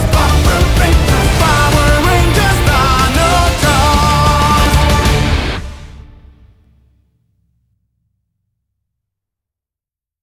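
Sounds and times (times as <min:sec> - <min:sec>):
theme song broadcast version: 0:00.0 - 0:06.7.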